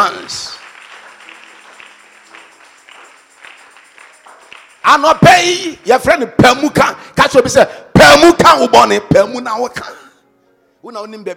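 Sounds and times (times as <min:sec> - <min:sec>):
speech: 0:00.0 - 0:00.6, 0:04.9 - 0:10.0, 0:10.8 - 0:11.3
muffled audience clapping: 0:00.0 - 0:05.3.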